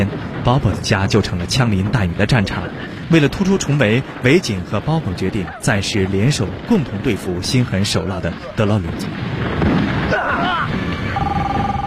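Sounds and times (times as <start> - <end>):
speech: 0.0 - 10.8
voice-like sounds: 2.3 - 9.1
mobile phone ringing on the body of a gangster: 11.2 - 11.8.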